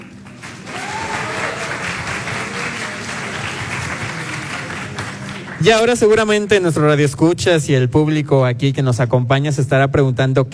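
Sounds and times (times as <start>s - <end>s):
audience applause: 0.0s - 6.2s
faint murmur of voices: 0.0s - 6.3s
speech: 5.6s - 10.5s.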